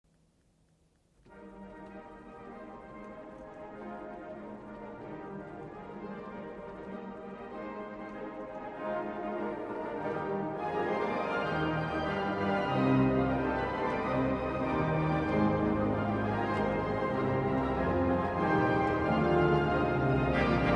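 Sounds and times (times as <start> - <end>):
organ prelude transcription: 1.2 - 20.7.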